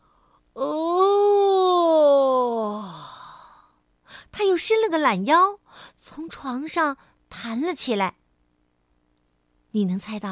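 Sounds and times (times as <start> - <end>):
person yawning: 0.6 - 3.7
speech: 4.6 - 8.2, 9.7 - 10.3.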